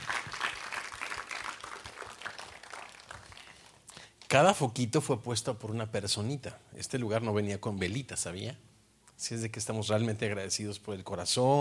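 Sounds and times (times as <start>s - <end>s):
loud audience applause: 0.0s - 3.8s
speech: 4.3s - 11.6s.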